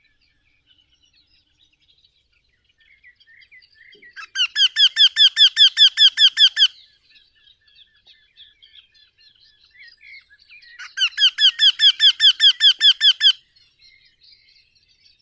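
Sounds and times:
Eurasian wryneck Jynx torquilla calling: 4.2s - 6.7s, 10.8s - 13.4s.

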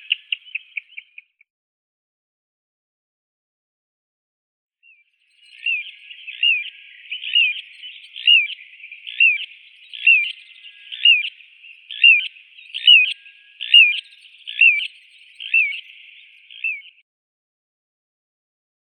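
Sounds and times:
little ringed plover Charadrius dubius calling: 5.5s - 17.0s.

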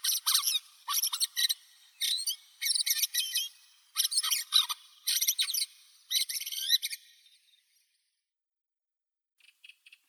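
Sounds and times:
redwing Turdus iliacus calling: 0.0s - 7.1s.

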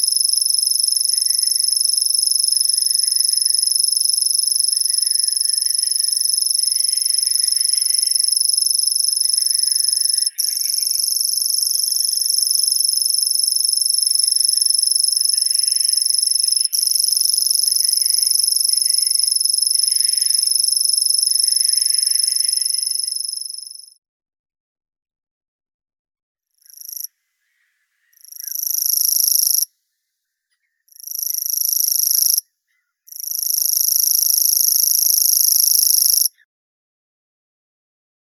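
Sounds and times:
Locustella naevia singing: 0.0s - 23.9s, 28.2s - 29.7s, 30.9s - 32.4s, 33.1s - 36.4s
common cricket chirping: 0.0s - 24.0s, 26.6s - 27.1s, 28.0s - 29.7s, 30.7s - 36.4s.

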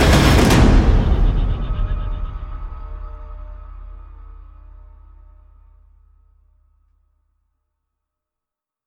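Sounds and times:
percussion: 0.0s - 6.8s.

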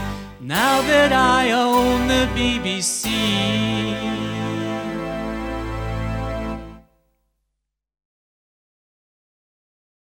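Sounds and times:
acoustic music: 0.0s - 7.1s.

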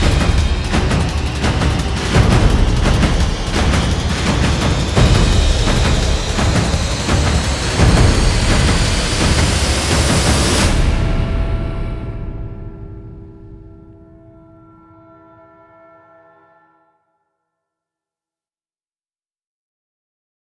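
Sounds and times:
drums building: 0.0s - 14.3s.

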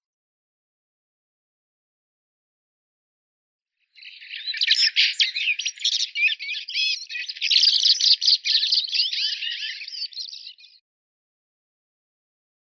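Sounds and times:
blackbird Turdus merula: 4.0s - 10.8s.

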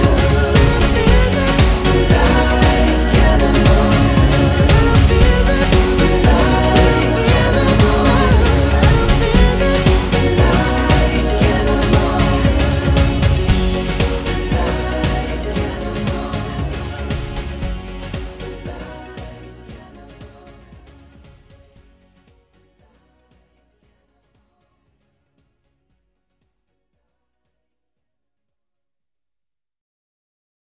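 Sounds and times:
instrumental music: 0.0s - 20.5s.

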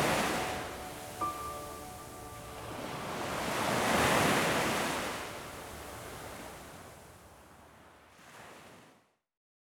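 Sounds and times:
chilled piano: 0.0s - 7.2s
ocean waves: 0.0s - 8.9s.

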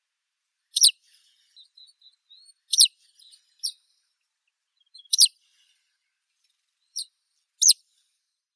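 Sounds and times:
citrine wagtail Motacilla citreola calling: 5.0s - 5.3s.

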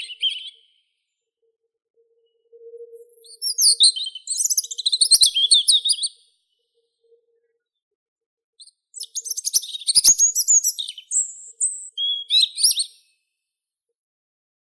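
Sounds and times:
robin Erithacus rubecula singing: 0.0s - 0.8s, 3.0s - 6.2s, 8.6s - 13.0s.

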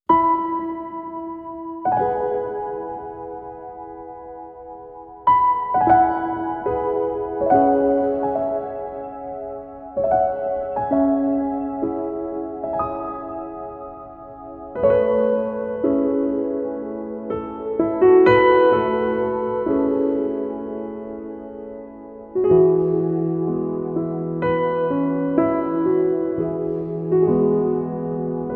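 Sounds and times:
piano: 0.0s - 28.5s.

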